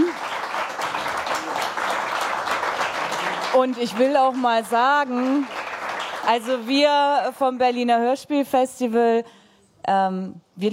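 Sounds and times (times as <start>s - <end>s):
applause: 0.0s - 7.0s
speech: 3.6s - 5.6s, 6.3s - 10.7s.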